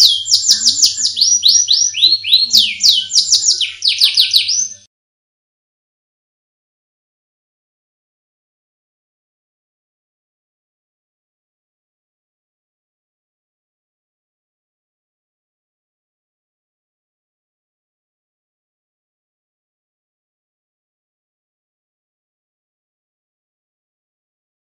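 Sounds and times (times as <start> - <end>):
Oriental magpie-robin singing: 0.0 - 4.9.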